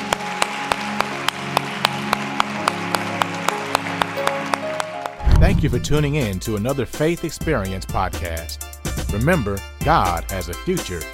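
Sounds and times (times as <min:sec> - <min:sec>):
audience round of applause: 0:00.0 - 0:05.2
speech: 0:05.6 - 0:11.1.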